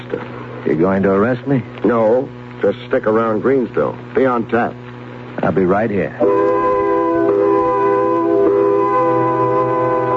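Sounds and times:
speech: 0.1s - 4.8s, 5.4s - 6.6s
factory quitting-time whistle: 6.2s - 10.1s.

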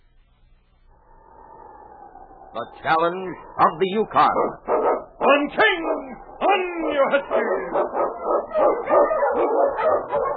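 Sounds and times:
speech: 2.5s - 10.3s
husky sled dogs barking and yipping on a snowy Yukon trail: 4.1s - 10.3s.

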